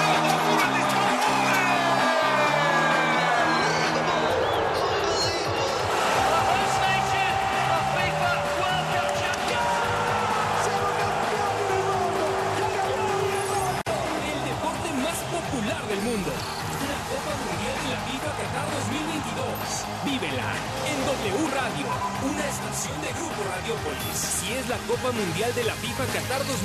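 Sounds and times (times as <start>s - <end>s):
announcers shouting goal calls in several languages: 0.0s - 25.4s
cheering crowd: 0.0s - 26.6s
speech: 25.4s - 26.6s.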